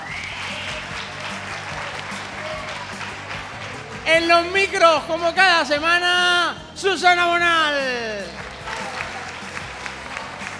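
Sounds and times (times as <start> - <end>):
student audience applause: 0.0 - 5.3, 7.8 - 10.5
murmur of voices: 0.0 - 10.5
speech: 4.1 - 8.4.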